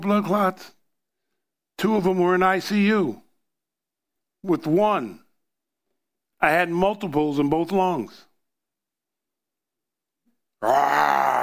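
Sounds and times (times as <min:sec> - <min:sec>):
speech: 0:00.0 - 0:00.8, 0:01.8 - 0:03.2, 0:04.4 - 0:05.2, 0:06.4 - 0:08.3, 0:10.6 - 0:11.4
voice imitating a growling roar: 0:10.6 - 0:11.4.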